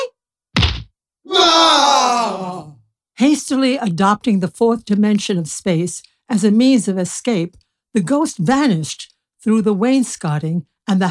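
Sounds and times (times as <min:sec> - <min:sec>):
thrown pillow hitting with a thump: 0:00.6 - 0:00.9
long drawn-out groaning voice: 0:01.3 - 0:02.7
speech: 0:03.2 - 0:11.0.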